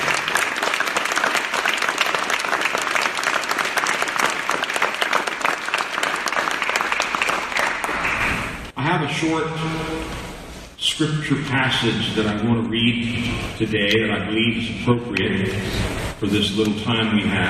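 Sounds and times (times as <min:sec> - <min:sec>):
audience applause: 0:00.0 - 0:08.7
speech: 0:09.0 - 0:10.2, 0:10.8 - 0:17.4.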